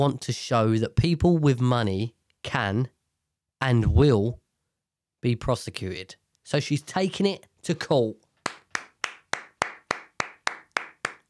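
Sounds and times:
speech: 0.0s - 3.0s, 3.6s - 4.4s, 5.2s - 8.2s
clapping: 8.4s - 11.2s.

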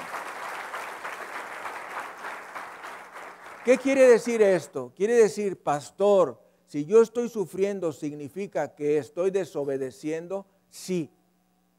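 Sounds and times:
audience applause: 0.0s - 4.4s
speech: 3.6s - 11.2s.

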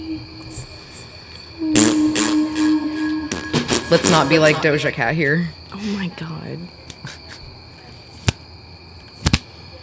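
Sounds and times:
high-pitched insect-like drone: 1.6s - 5.1s
speech: 3.9s - 6.8s
sticky hand toy slapping: 8.2s - 8.4s, 9.1s - 9.5s.

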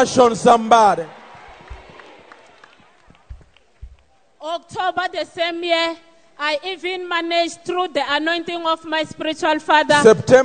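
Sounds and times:
speech: 0.0s - 1.2s, 4.4s - 10.4s
audience clapping: 1.0s - 4.2s.

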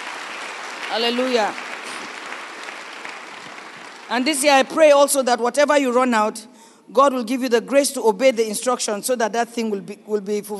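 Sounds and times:
audience clapping: 0.0s - 4.9s
speech: 0.9s - 1.6s, 4.1s - 10.5s.

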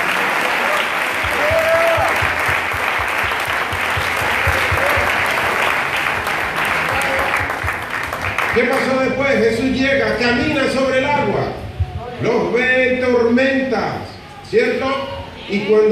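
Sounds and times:
audience applauding: 0.0s - 9.2s
speech: 9.3s - 11.6s, 12.2s - 15.8s.

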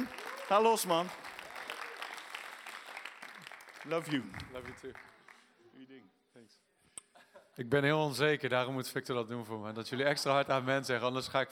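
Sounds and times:
audience applause: 0.0s - 5.5s
speech: 0.5s - 1.2s, 3.9s - 5.1s, 5.8s - 6.7s, 7.6s - 11.5s.

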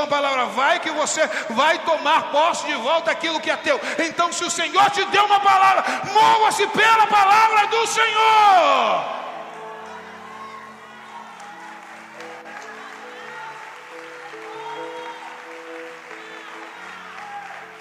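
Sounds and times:
speech: 0.0s - 9.2s
audience applause: 9.6s - 17.7s.

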